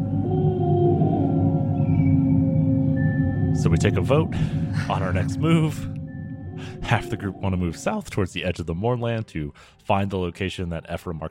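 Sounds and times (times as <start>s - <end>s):
unnatural howls: 0.0s - 7.8s
speech: 3.6s - 6.0s, 6.6s - 11.2s.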